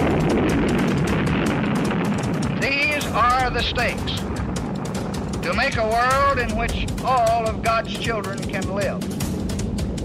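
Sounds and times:
nuclear bomb explosion rumbling roar: 0.0s - 7.7s
speech: 3.5s - 4.2s, 5.5s - 9.2s.

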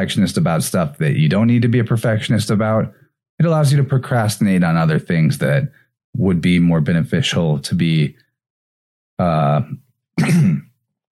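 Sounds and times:
speech: 0.0s - 8.2s, 9.2s - 10.6s
person clearing throat: 10.2s - 10.8s.

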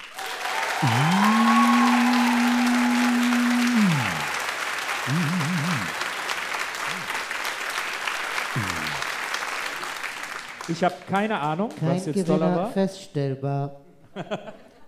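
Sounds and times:
sustained whistle-like cheer: 0.0s - 4.4s
wavering whoops: 0.0s - 4.5s, 5.1s - 6.0s
live audience applause: 0.0s - 11.8s
speech: 0.8s - 1.2s, 10.8s - 14.6s
laughter: 0.8s - 4.4s, 5.0s - 6.0s, 8.6s - 9.0s, 14.1s - 14.8s.

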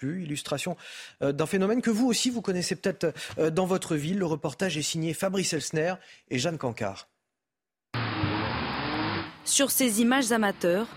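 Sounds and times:
speech: 0.0s - 7.1s, 9.4s - 10.9s
cars skidding at full speed: 8.0s - 9.5s.

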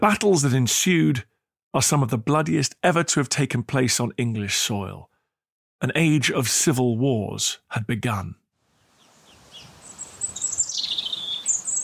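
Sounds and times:
speech: 0.0s - 5.1s, 5.8s - 8.4s
wind rustling oak leaves of the Royal Oak at Boscobel House: 8.6s - 11.8s
birds chirping and trilling: 8.8s - 11.8s.

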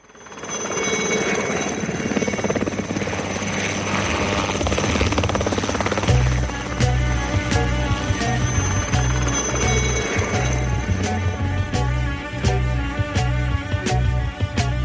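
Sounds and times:
helicopter rotor chopping: 0.0s - 14.8s
low music-like thuds and bass pulse: 5.2s - 14.8s.

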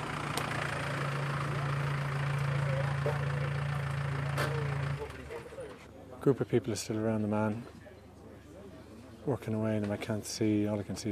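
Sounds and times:
ambulance engine idling: 0.0s - 5.9s
noise: 0.0s - 11.1s
speech: 6.2s - 7.8s, 9.3s - 11.1s.

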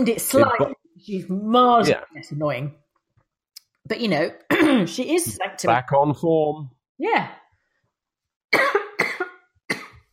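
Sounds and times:
speech: 0.0s - 2.8s, 3.9s - 7.4s
person coughing from drink going down wrong: 4.5s - 4.9s, 8.6s - 10.1s.

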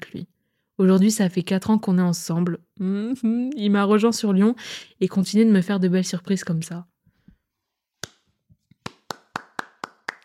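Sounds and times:
speech: 0.8s - 7.0s
hands clapping: 8.0s - 10.2s.

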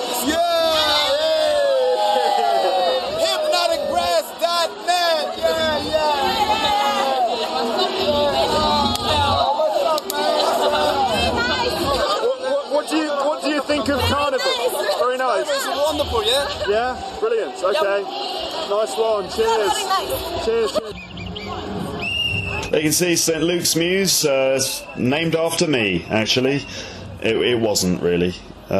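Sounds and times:
crowd chatter at a busy street carnival: 0.0s - 28.7s
speech: 0.2s - 0.4s, 16.0s - 21.1s, 22.7s - 28.7s
whoops: 0.7s - 3.3s.

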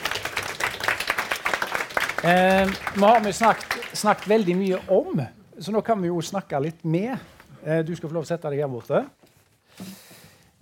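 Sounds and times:
audience applause: 0.0s - 5.0s
speech: 2.2s - 9.2s.

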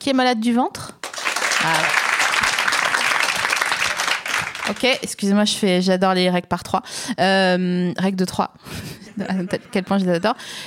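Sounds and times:
speech: 0.0s - 1.0s, 1.6s - 2.0s, 4.7s - 10.6s
audience applause: 1.0s - 5.0s
laughter: 8.8s - 10.4s.

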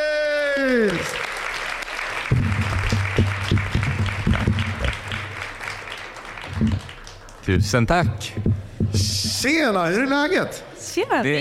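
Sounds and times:
crowd applauding: 0.4s - 7.5s
speech: 0.6s - 1.3s, 7.5s - 11.3s.

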